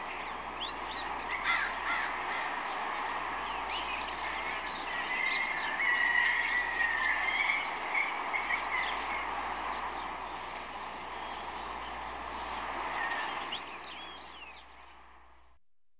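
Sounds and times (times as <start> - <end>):
bird: 0.0 - 15.1
village rooster crowing: 5.2 - 7.5.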